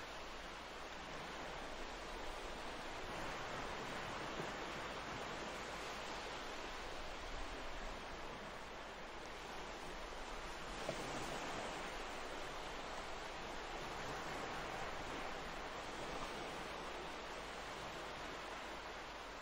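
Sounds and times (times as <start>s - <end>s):
beach ambience: 0.0s - 19.4s.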